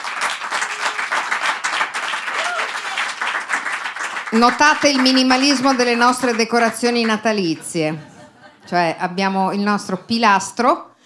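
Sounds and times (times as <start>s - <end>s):
audience applause: 0.0s - 8.0s
speech: 4.3s - 8.1s, 8.7s - 11.0s
laughter: 6.6s - 9.2s.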